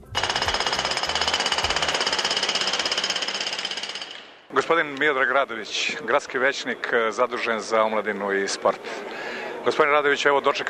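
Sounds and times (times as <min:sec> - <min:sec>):
power drilling during reconstruction of the Čair sports hall: 0:00.0 - 0:04.4
speech: 0:04.6 - 0:08.9, 0:09.6 - 0:10.6.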